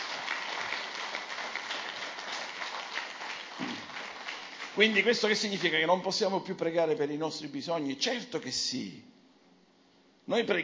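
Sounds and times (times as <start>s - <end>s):
audience applauding: 0.0s - 5.8s
speech: 4.8s - 9.2s, 10.3s - 10.6s.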